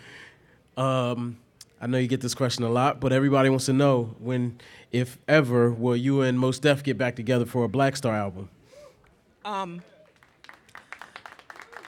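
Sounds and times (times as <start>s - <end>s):
speech: 0.8s - 8.6s, 9.4s - 9.9s
audience clapping: 9.8s - 11.8s.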